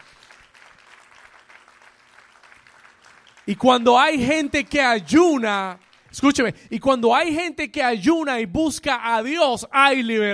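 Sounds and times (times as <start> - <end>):
audience applauding: 0.0 - 6.5
speech: 3.5 - 10.3.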